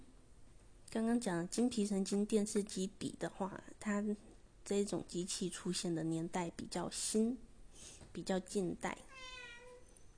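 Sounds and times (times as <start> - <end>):
speech: 0.9 - 9.4
cat meowing: 9.1 - 9.9.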